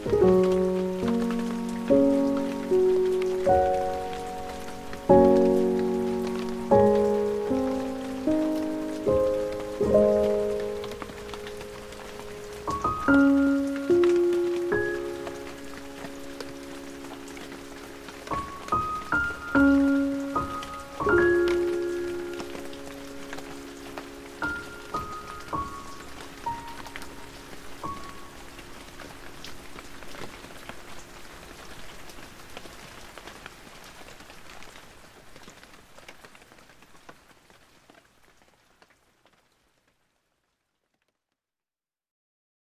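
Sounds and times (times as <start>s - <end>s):
baby sleep piano music: 0.0s - 31.1s
rain: 0.0s - 41.4s.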